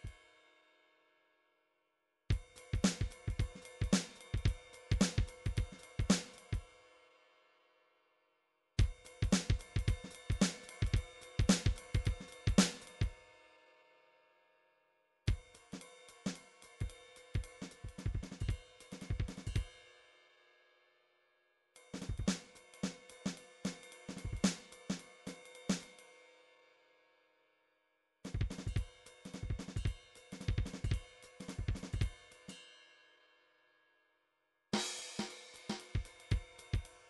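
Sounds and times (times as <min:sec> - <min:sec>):
midi drums: 0:02.3 - 0:06.6, 0:08.8 - 0:13.1, 0:16.3 - 0:19.7, 0:22.0 - 0:23.0, 0:23.7 - 0:25.0, 0:28.3 - 0:32.2, 0:34.8 - 0:37.0.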